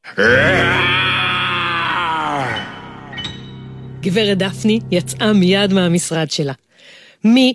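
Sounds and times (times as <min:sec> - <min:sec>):
human voice imitating a lion roaring loudly: 0:00.0 - 0:02.7
speech: 0:00.1 - 0:01.0, 0:04.0 - 0:07.5.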